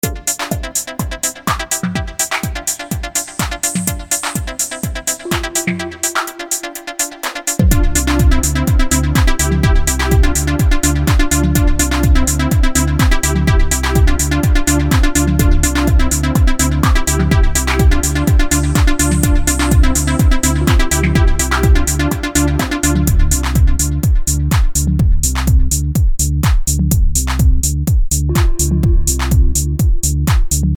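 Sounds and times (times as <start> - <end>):
trance music: 0.0 - 30.7.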